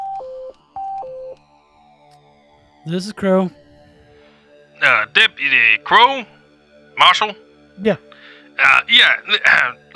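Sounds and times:
phone ringing with two-note electronic tone: 0:00.0 - 0:01.4
speech: 0:02.8 - 0:03.6, 0:04.8 - 0:06.4, 0:07.0 - 0:09.9.

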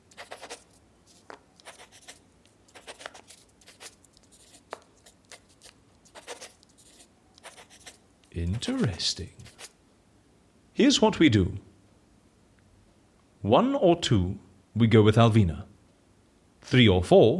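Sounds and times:
pen scratching on paper writing a note by hand in an office: 0:00.0 - 0:09.8
speech: 0:08.4 - 0:09.4, 0:10.8 - 0:11.7, 0:13.5 - 0:15.7, 0:16.7 - 0:17.3.

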